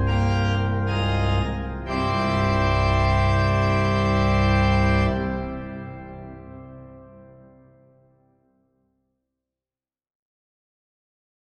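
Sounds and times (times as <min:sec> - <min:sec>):
Schantz pipe organ playing a maestoso piece: 0:00.0 - 0:07.8.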